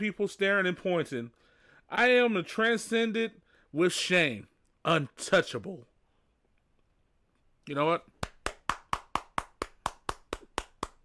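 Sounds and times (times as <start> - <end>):
speech: 0.0 - 5.9, 7.7 - 8.1
hand clapping: 8.1 - 11.0.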